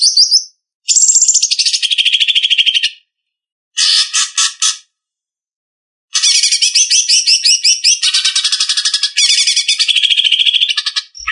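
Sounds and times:
greater green leafbird song: 0.0s - 3.0s, 6.2s - 11.2s.

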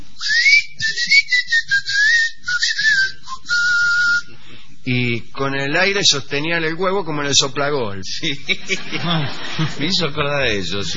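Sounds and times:
person whistling upward, imitating the whistling of snakes: 0.2s - 4.3s
speech: 4.9s - 10.9s
laughter: 8.2s - 10.9s.

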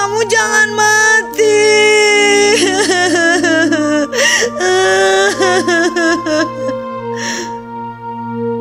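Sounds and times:
speech: 0.2s - 1.0s
child crying loudly: 1.7s - 6.8s.

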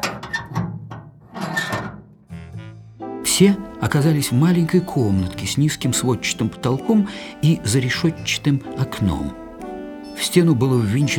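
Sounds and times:
heavy oak door creaking open on its hinges: 0.0s - 2.2s
speech: 3.4s - 9.4s, 10.2s - 11.1s.

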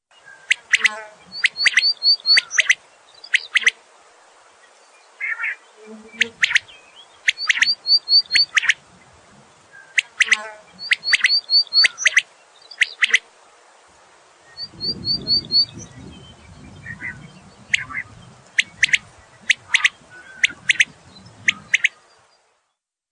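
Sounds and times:
common quail calling: 0.3s - 3.8s, 5.2s - 13.3s, 14.6s - 15.9s, 16.8s - 22.1s.

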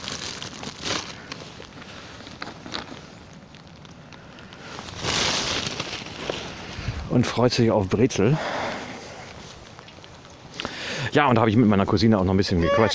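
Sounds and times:
paper bag rustling: 0.0s - 3.9s, 4.6s - 6.9s
speech: 7.1s - 8.6s, 11.2s - 12.9s.

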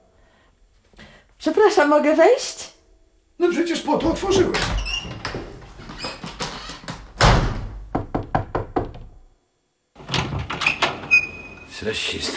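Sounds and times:
speech: 1.4s - 2.7s, 3.4s - 4.8s, 11.8s - 12.3s
knocking on a door: 7.2s - 9.2s.

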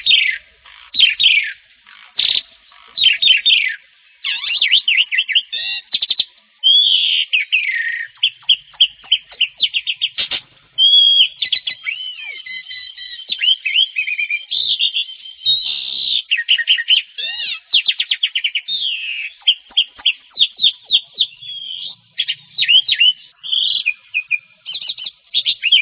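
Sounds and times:
Oriental magpie-robin singing whistled phrases and clicking trill: 0.0s - 25.8s.

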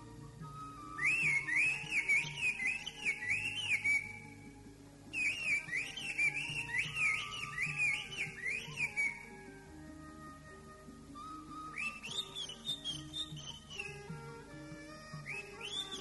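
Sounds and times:
greater green leafbird song: 0.0s - 9.6s, 10.4s - 15.9s.

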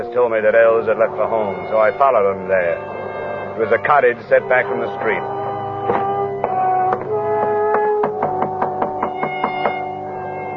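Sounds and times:
sustained tonal musical drone: 0.0s - 10.5s
speech: 0.1s - 3.0s, 3.6s - 5.4s
knocking on a door: 5.9s - 9.9s.

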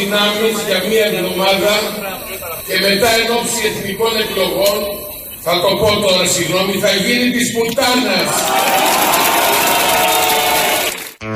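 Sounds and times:
speech: 0.0s - 9.8s
crowd applauding and cheering: 8.0s - 11.2s.

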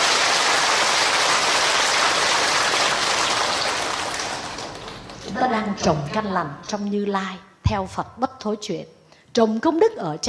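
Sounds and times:
crowd applause: 0.0s - 5.5s
speech: 5.7s - 10.2s.

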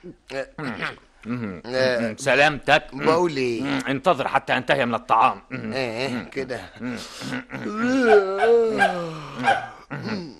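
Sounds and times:
speech: 0.0s - 10.3s
dog barking and growling: 8.0s - 10.1s.

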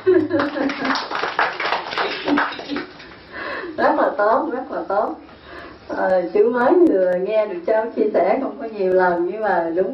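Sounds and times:
people clapping hands: 0.2s - 3.1s
speech: 4.2s - 5.3s, 5.9s - 9.9s.

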